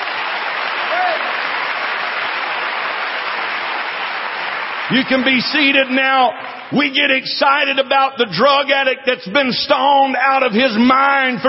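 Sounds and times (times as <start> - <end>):
audience applauding: 0.0 - 6.6
speech: 4.9 - 11.4.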